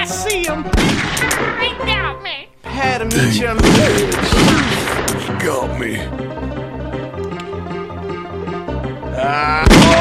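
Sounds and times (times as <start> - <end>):
speech: 0.0 - 2.2, 3.0 - 4.7, 5.4 - 6.6, 9.2 - 10.0
video game gunshot: 0.7 - 1.6, 3.6 - 5.2, 9.6 - 10.0.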